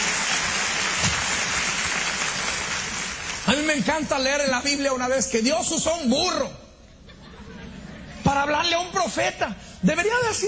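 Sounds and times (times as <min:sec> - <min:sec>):
crowd applauding: 0:00.0 - 0:03.9
speech: 0:03.8 - 0:06.6, 0:08.3 - 0:10.4
laughter: 0:07.0 - 0:08.4.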